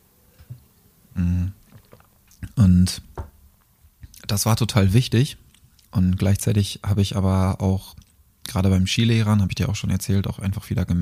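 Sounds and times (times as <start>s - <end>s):
quick gulping swallow of a drink: 1.2s - 2.6s
speech: 2.7s - 3.1s, 4.3s - 11.0s.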